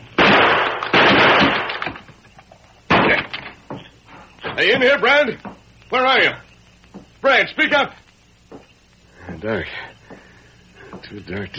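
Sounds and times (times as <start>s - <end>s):
gunshots in a drama standoff: 0.2s - 2.0s, 2.9s - 3.5s
speech: 4.6s - 6.4s, 7.2s - 8.0s, 9.4s - 9.8s, 11.1s - 11.5s.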